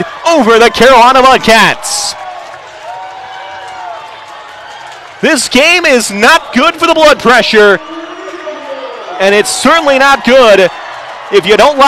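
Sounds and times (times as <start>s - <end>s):
speech: 0.0s - 2.2s, 5.2s - 8.0s, 9.2s - 11.8s
baseball crowd cheering at Atrium Health Ballpark: 0.0s - 11.8s.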